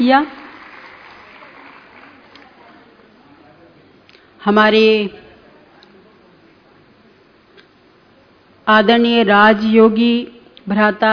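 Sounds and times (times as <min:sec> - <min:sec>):
speech: 0:00.0 - 0:00.4, 0:04.4 - 0:05.2, 0:08.7 - 0:11.1
audience applause: 0:00.0 - 0:03.0.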